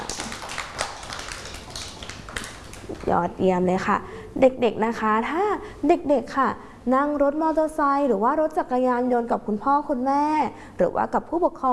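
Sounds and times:
audience clapping for a small child: 0.0s - 3.1s
speech: 3.0s - 11.7s.

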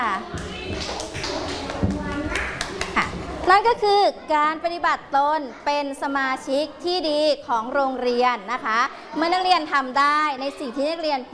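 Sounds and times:
children chattering: 0.0s - 11.3s
students clapping: 0.3s - 3.1s
speech: 3.5s - 11.3s.

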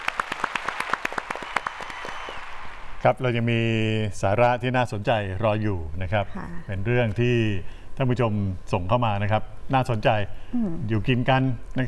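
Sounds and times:
applause, hands clapping: 0.0s - 2.8s
speech: 3.0s - 11.8s.

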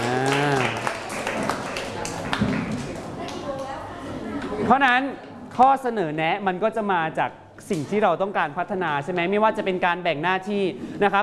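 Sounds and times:
group applause: 0.0s - 3.4s
speech: 4.7s - 11.2s.

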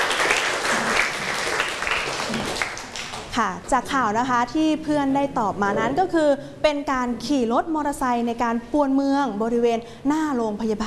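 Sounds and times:
classroom applause: 0.0s - 3.3s
speech: 3.4s - 10.8s.

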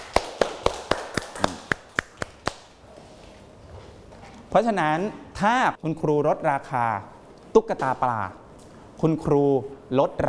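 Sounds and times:
classroom clapping for a student: 0.0s - 2.7s
speech: 4.5s - 8.4s, 9.0s - 10.2s.

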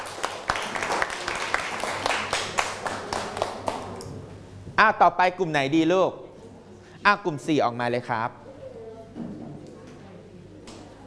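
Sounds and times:
audience applauding: 0.0s - 4.0s
speech: 4.8s - 6.2s, 7.0s - 8.4s.

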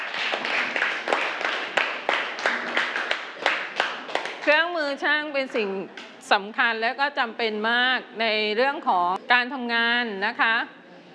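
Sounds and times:
children clapping for a classmate: 0.0s - 4.6s
speech: 4.9s - 10.8s.

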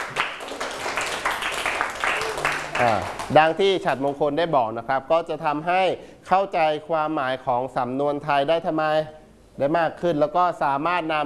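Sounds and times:
classroom students applauding a classmate: 0.0s - 3.4s
speech: 2.8s - 11.2s.

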